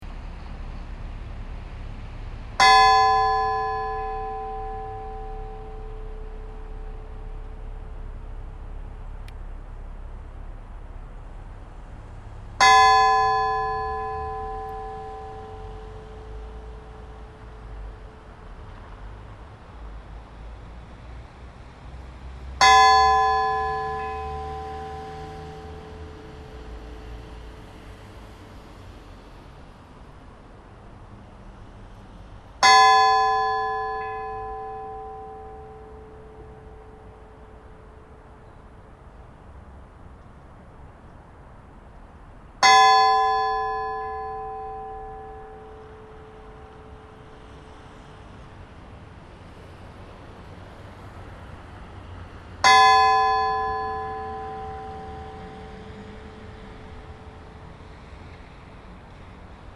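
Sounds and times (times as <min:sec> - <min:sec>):
funeral bells ringing at Laugarneskirkja church: 0:02.6 - 0:08.8, 0:12.6 - 0:18.9, 0:22.4 - 0:29.4, 0:32.6 - 0:38.7, 0:42.6 - 0:49.8, 0:52.4 - 0:59.2.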